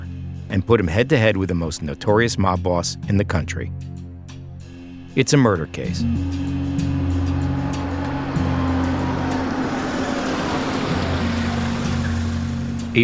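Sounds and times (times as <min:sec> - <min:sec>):
speech: 0:00.5 - 0:04.0, 0:05.2 - 0:06.9
car pulling up to Pannone's Meat Market: 0:06.0 - 0:13.0.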